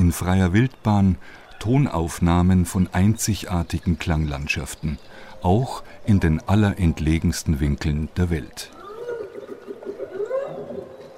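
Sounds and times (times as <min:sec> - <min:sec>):
speech: 0:00.1 - 0:08.8
whale song recorded off the coast of Alaska: 0:08.8 - 0:11.1.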